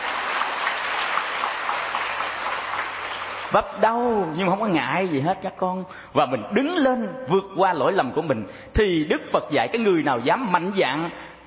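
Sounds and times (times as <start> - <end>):
audience applause at a Buddhist sermon: 0.0 - 3.6
speech: 3.5 - 11.3.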